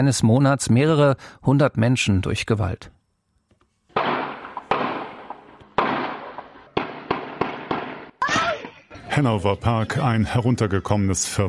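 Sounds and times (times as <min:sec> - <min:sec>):
speech: 0:00.0 - 0:03.0, 0:09.2 - 0:11.4
gunfire from a street shootout: 0:03.9 - 0:08.8.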